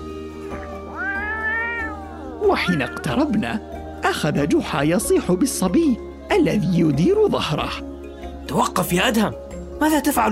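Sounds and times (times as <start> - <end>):
cat meowing: 0.5 - 3.4
speech: 2.4 - 7.9, 8.5 - 10.3.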